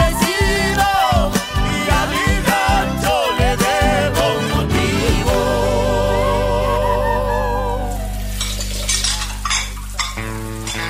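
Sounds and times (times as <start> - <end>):
person singing a melody: 0.0 - 8.3
music: 0.0 - 9.1
tap water running while washing dishes: 7.8 - 10.8
dishes and cutlery clinking: 8.4 - 10.8.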